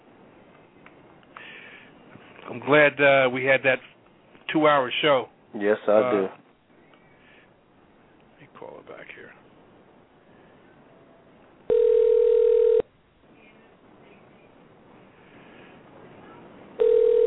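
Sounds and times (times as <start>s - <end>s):
speech: 2.5s - 3.9s, 4.5s - 6.4s
phone line ringing on a call: 11.7s - 12.9s, 16.8s - 17.2s.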